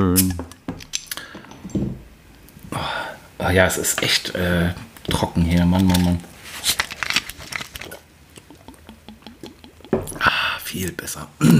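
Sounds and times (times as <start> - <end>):
speech: 0.0 - 0.5, 2.8 - 6.8, 10.8 - 11.5
people drinking: 7.8 - 10.6.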